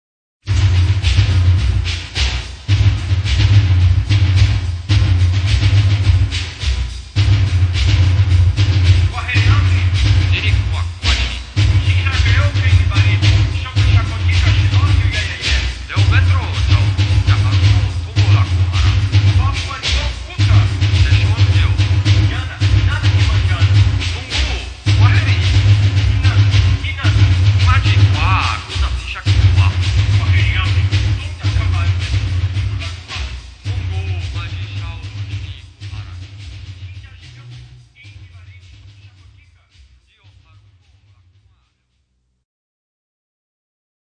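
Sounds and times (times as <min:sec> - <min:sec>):
drums: 0:00.4 - 0:42.2.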